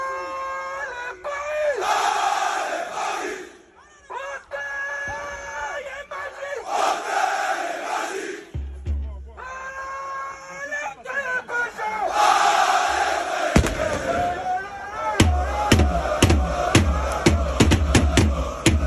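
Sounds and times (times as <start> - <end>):
football supporters chanting in unison in a stadium: 1.3 - 3.8, 6.0 - 8.6, 11.4 - 18.8
low thump: 15.2 - 18.8.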